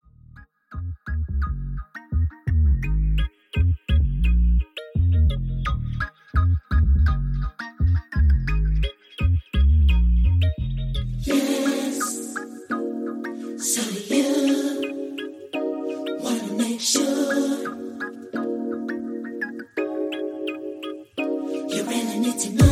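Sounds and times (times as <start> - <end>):
instrumental music: 0.3 - 22.7
backing vocals: 11.3 - 12.7, 13.5 - 15.3, 16.1 - 18.1, 21.7 - 22.7.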